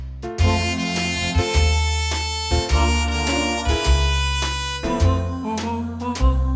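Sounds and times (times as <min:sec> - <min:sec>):
karaoke singing: 0:00.4 - 0:06.5.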